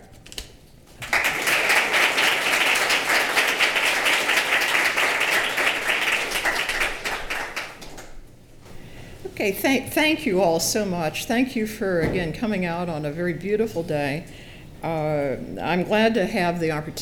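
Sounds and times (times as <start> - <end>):
college lecture audience applauding to welcome back a professor: 1.0 - 8.1
speech: 9.4 - 17.0.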